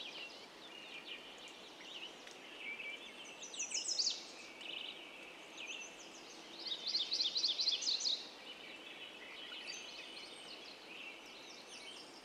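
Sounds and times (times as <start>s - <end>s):
dawn chorus of mountain birds in Yellowstone Park: 0.0s - 12.2s.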